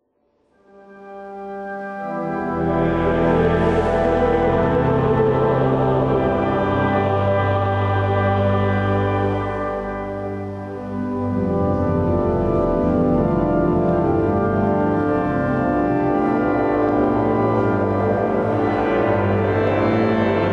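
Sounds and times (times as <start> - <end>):
organ: 0.6 - 20.5
gospel responses and improvisation: 2.5 - 10.6, 16.3 - 20.5.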